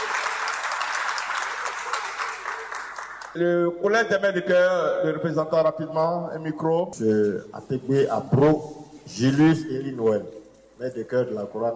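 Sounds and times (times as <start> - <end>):
audience applause for singers at a gathering of church choirs: 0.0 - 3.4
speech: 3.4 - 11.7.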